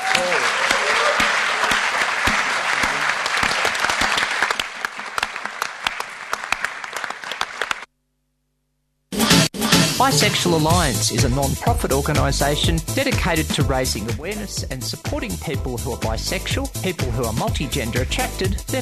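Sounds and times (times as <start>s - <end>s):
audience applause for panel members after a discussion on the rainbow community: 0.0s - 7.9s
speech: 10.1s - 18.7s.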